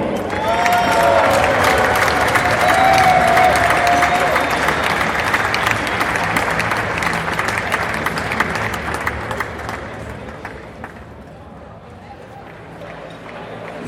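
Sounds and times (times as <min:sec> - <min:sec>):
audience applause: 0:00.2 - 0:11.2
whistles and cheers: 0:00.3 - 0:06.2.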